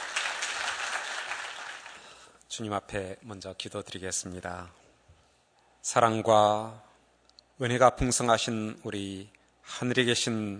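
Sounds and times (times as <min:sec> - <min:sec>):
audience applause: 0:00.0 - 0:02.2
speech: 0:02.6 - 0:04.8, 0:05.8 - 0:06.9, 0:07.6 - 0:10.5.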